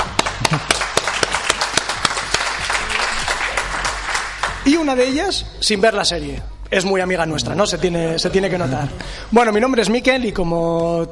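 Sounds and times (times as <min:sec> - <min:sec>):
audience applauding: 0:00.0 - 0:04.7
speech: 0:04.7 - 0:11.0.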